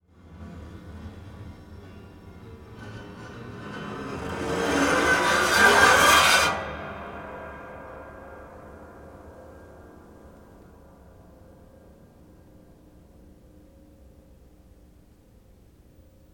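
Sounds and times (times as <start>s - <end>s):
scrapes: 2.6s - 7.8s.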